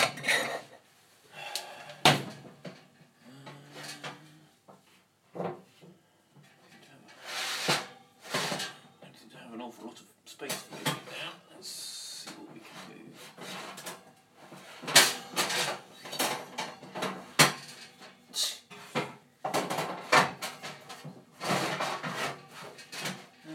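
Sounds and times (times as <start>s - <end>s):
metal oven shelf clanking and scraping in a home kitchen: 0.0s - 0.8s, 6.4s - 9.2s, 10.4s - 11.3s, 12.2s - 23.5s
talk: 9.0s - 13.3s.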